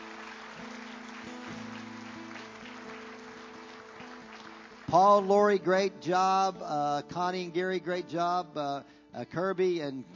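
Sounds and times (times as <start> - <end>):
audience clapping: 0.0 - 5.6
speech: 4.9 - 10.1.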